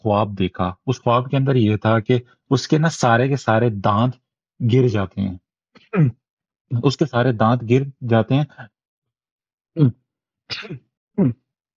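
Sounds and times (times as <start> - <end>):
speech: 0.0 - 8.7, 9.8 - 11.4
cough: 5.8 - 6.2, 9.8 - 11.5.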